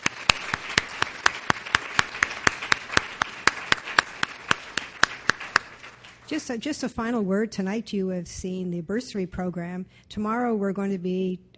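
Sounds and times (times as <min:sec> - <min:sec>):
audience applause at an evening presentation of a bursary program: 0:00.0 - 0:06.2
speech: 0:06.3 - 0:11.5.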